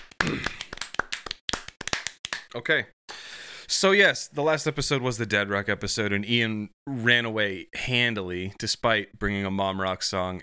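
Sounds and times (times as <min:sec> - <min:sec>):
hand clapping: 0:00.0 - 0:02.5
speech: 0:02.5 - 0:03.0, 0:03.7 - 0:10.4.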